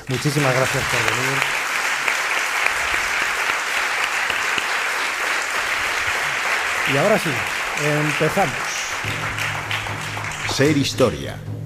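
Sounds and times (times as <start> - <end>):
audience applause in a hall: 0.0 - 11.2
speech: 0.1 - 1.6, 6.9 - 9.5, 10.6 - 11.5.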